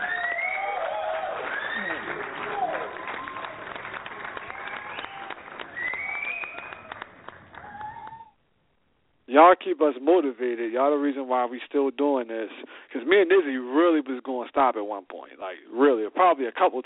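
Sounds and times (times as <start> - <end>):
applause: 0.0 - 8.4
speech: 9.4 - 16.8.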